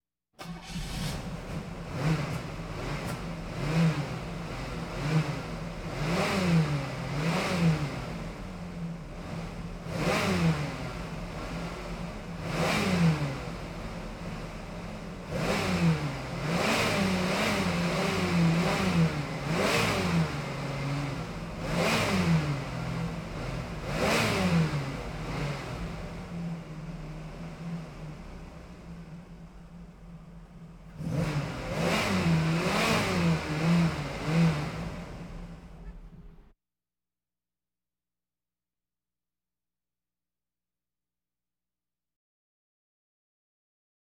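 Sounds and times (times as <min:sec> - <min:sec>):
various automobiles: 0:00.4 - 0:36.5.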